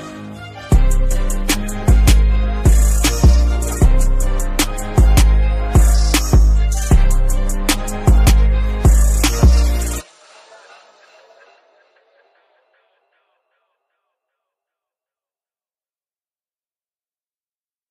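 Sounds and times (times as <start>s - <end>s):
instrumental music: 0.0s - 10.1s.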